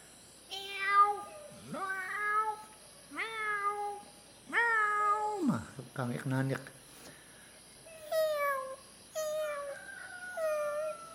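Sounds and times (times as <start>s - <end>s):
person imitating a cat's meow: 0.5s - 5.6s, 7.9s - 11.1s
speech: 6.0s - 6.8s.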